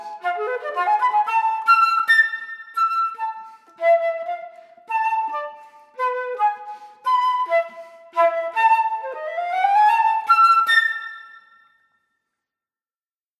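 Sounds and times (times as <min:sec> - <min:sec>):
flute playing a Latin dance piece: 0:00.4 - 0:04.1, 0:04.9 - 0:11.6.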